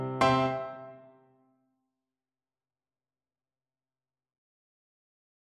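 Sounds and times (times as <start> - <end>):
flute melody: 0.2 - 1.1.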